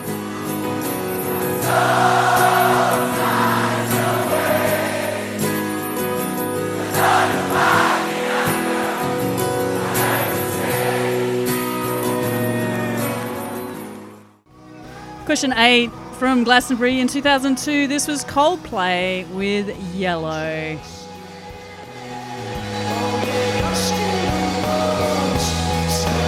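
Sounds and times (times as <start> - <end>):
large festival crowd singing along: 0.6 - 14.0, 21.2 - 26.2
speech: 15.3 - 21.0.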